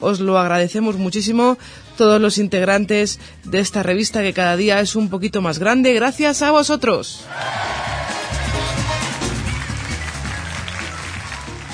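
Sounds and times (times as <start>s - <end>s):
speech: 0.0s - 8.0s
audience applause: 7.3s - 11.7s.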